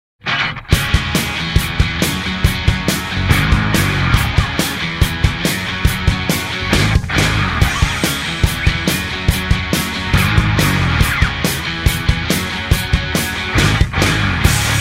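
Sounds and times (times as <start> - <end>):
straight rock drum beat: 0.6 - 14.8.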